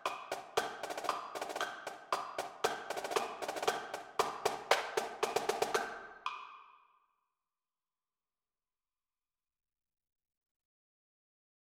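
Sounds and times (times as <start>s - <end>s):
snare drum: 0.0s - 6.5s.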